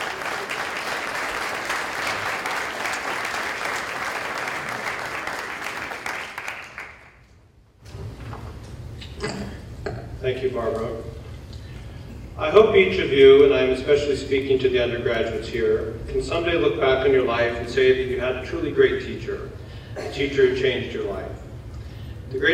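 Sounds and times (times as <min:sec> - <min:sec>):
audience applause: 0:00.0 - 0:07.2
speech: 0:10.3 - 0:11.1, 0:12.4 - 0:21.4, 0:22.3 - 0:22.5.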